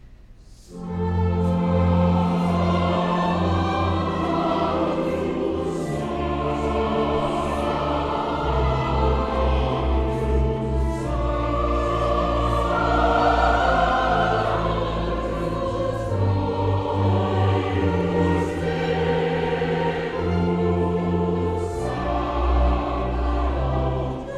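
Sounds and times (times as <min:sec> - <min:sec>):
chancel choir singing a mass: 0:00.5 - 0:24.3.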